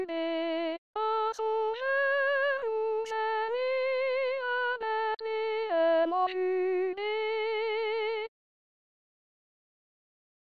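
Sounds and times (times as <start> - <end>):
soprano singing: 0.0 - 8.3.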